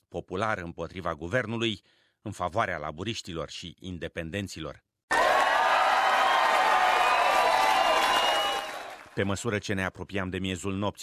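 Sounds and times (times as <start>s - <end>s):
speech: 0.1s - 4.9s, 9.2s - 11.0s
supporters applauding and cheering: 5.1s - 9.3s.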